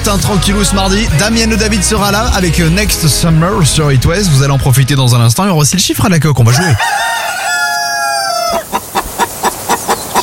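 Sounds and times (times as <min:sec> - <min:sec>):
speech: 0:00.0 - 0:07.1
hen cackling and clucking: 0:06.5 - 0:10.2.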